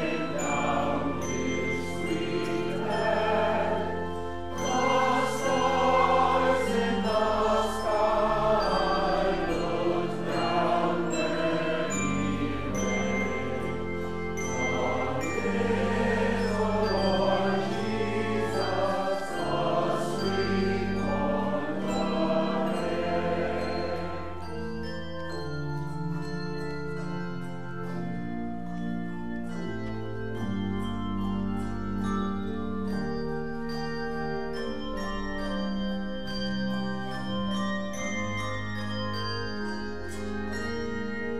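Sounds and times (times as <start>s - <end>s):
mass choir singing: 0.0s - 25.4s
handbells ringing: 0.0s - 41.3s.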